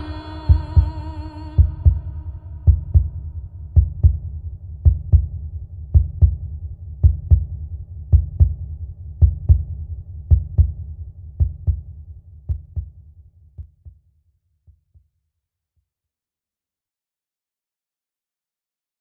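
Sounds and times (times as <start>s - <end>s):
native voices: 0.0s - 2.4s
heartbeat: 0.5s - 14.0s.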